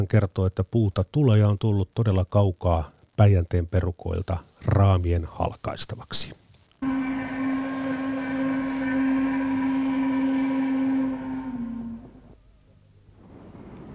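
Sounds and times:
speech: 0:00.0 - 0:06.9
faint hiss: 0:00.0 - 0:13.9
sawmill steam whistle signaling shift change: 0:06.8 - 0:12.4.

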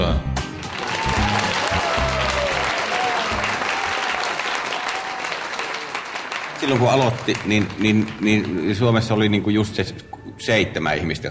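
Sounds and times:
audience applause welcoming stand-up comedian Ismo Leikola on stage: 0:00.5 - 0:09.3
speech: 0:06.6 - 0:11.2.

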